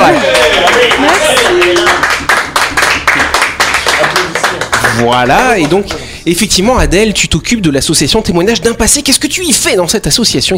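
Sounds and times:
applause from a small group: 0:00.0 - 0:06.1
speech: 0:05.0 - 0:10.5.

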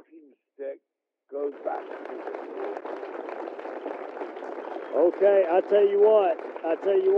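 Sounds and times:
audience applause: 0:01.4 - 0:07.1
speech: 0:05.2 - 0:07.1.

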